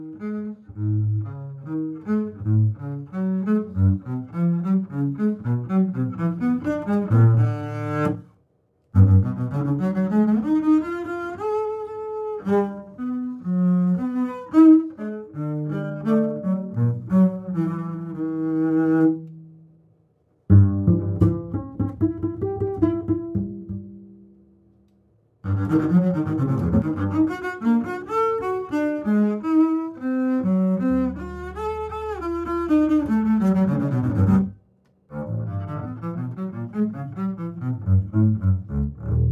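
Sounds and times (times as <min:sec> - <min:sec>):
contemporary double bass: 0:00.0 - 0:08.3, 0:09.0 - 0:19.5, 0:20.5 - 0:24.4, 0:25.4 - 0:39.3.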